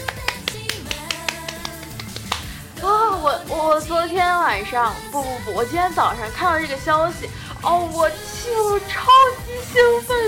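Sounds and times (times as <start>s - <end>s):
hand clapping: 0.0s - 2.6s
speech: 3.6s - 10.2s.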